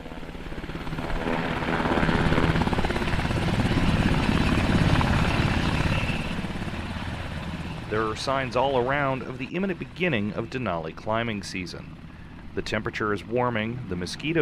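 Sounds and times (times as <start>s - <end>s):
army helicopter in flight: 0.0s - 14.3s
speech: 8.0s - 14.3s.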